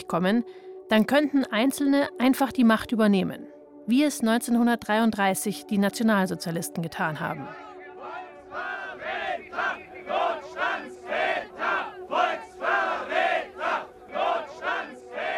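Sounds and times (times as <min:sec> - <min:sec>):
speech: 0:00.1 - 0:07.7
protest crowd shouting: 0:07.5 - 0:15.3.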